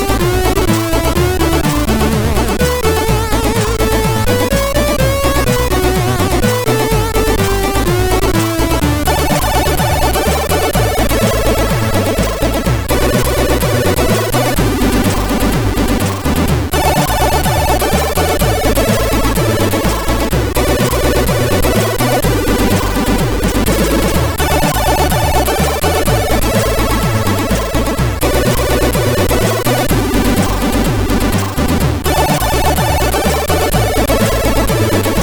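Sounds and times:
chiptune game music on a sound chip: 0.0 - 35.2.

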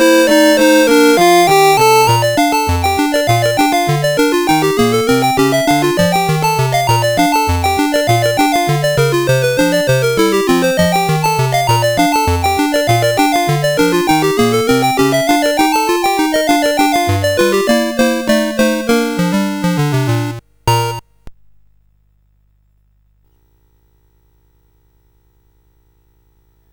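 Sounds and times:
CSG8580R5 chip music: 0.0 - 21.0.

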